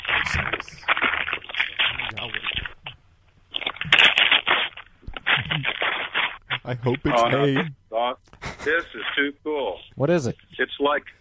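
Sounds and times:
paper rustling and crackling: 0:00.0 - 0:07.6
speech: 0:06.7 - 0:11.2.

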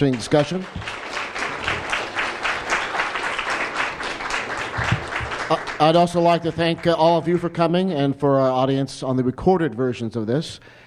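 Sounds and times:
speech: 0:00.0 - 0:01.0, 0:05.5 - 0:10.8
audience applause after a lecture: 0:00.0 - 0:07.0.

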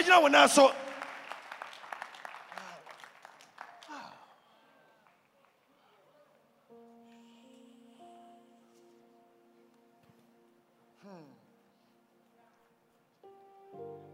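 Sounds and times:
speech: 0:00.1 - 0:00.8
audience clapping: 0:00.1 - 0:06.5.

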